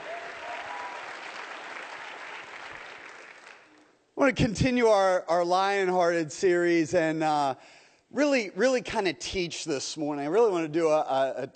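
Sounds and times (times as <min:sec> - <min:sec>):
audience cheers and shouts of praise: 0:00.0 - 0:01.2
audience applause: 0:00.0 - 0:03.7
speech: 0:04.2 - 0:11.5.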